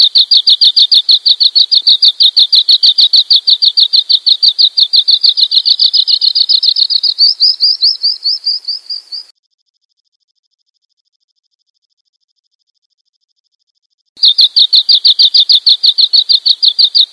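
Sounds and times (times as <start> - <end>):
bird chirping: 0.0 - 9.3, 14.2 - 17.1.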